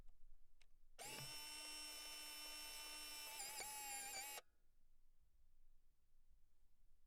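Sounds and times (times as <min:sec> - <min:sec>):
film loading: 0:01.0 - 0:04.4.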